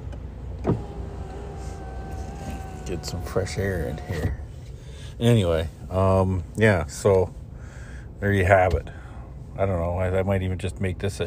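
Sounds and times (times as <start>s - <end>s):
car power window rolling down: 0.4s - 4.8s
speech: 2.9s - 4.4s, 5.2s - 7.4s, 8.2s - 9.0s, 9.6s - 11.2s.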